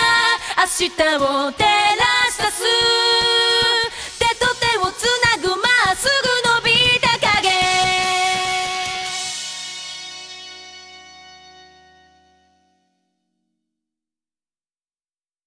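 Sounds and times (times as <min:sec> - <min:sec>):
a cappella singing: 0:00.0 - 0:09.4.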